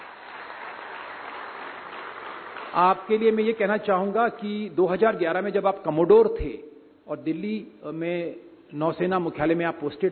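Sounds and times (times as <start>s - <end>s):
audience clapping at an award ceremony honouring a naval officer: 0.0s - 3.6s
speech: 2.8s - 10.0s.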